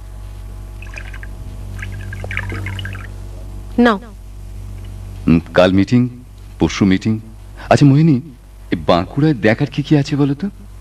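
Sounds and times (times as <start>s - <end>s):
low steady hum: 0.0s - 10.7s
water being poured for drinking: 0.8s - 3.2s
speech: 3.8s - 4.2s, 5.3s - 10.6s.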